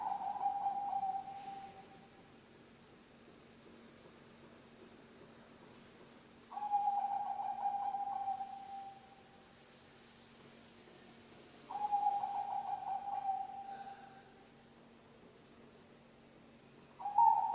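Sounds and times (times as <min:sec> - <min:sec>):
zebra dove cooing: 0:00.0 - 0:02.0, 0:06.5 - 0:09.0, 0:11.7 - 0:14.2, 0:17.0 - 0:17.5.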